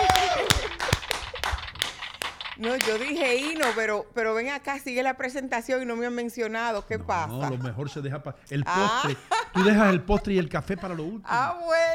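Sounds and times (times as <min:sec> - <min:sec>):
audience applause: 0:00.0 - 0:03.8
speech: 0:02.6 - 0:11.9
laughter: 0:07.0 - 0:11.5.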